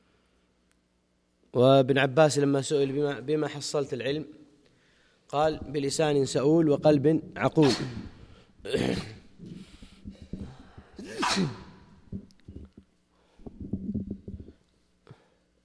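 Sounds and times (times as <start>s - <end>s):
speech: 1.5s - 4.4s, 5.3s - 9.5s, 11.4s - 11.6s
sneeze during a religious lecture: 7.6s - 11.9s.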